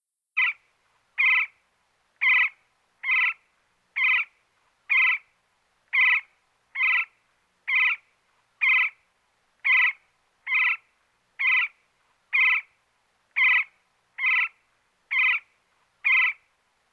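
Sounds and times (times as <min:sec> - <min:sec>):
woodpecker chirping: 0:00.4 - 0:00.6, 0:01.2 - 0:01.6, 0:02.2 - 0:03.4, 0:04.0 - 0:04.3, 0:04.9 - 0:05.3, 0:05.9 - 0:07.1, 0:07.7 - 0:08.0, 0:08.6 - 0:09.0, 0:09.6 - 0:12.7, 0:13.4 - 0:16.4.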